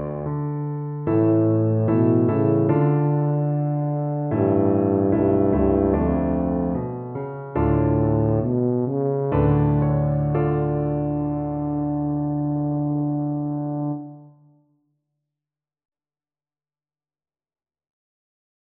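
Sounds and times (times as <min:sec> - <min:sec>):
tuba playing a classical symphony movement: 0:00.0 - 0:14.5.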